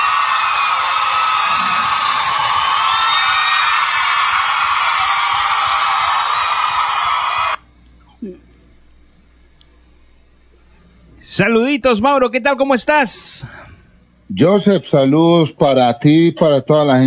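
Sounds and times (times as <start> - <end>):
applause: 0.0 - 7.6
cheering: 0.0 - 7.6
speech: 11.4 - 13.7, 14.3 - 17.0.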